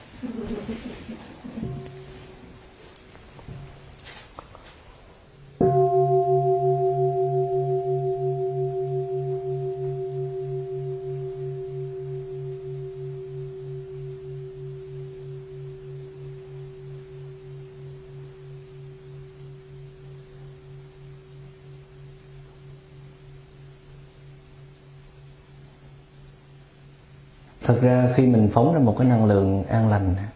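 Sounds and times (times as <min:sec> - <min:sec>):
speech: 0:00.2 - 0:01.7, 0:27.8 - 0:30.3
bell ringing: 0:05.6 - 0:20.1.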